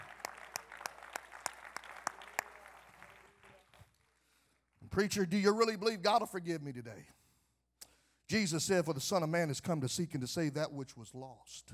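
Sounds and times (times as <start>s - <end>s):
audience clapping hands: 0.0s - 4.4s
speech: 5.0s - 7.2s, 8.3s - 11.7s.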